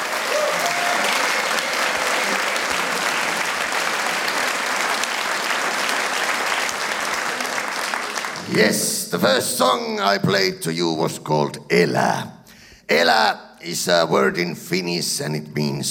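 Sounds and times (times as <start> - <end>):
audience applause: 0.0 - 9.0
speech: 8.6 - 15.9.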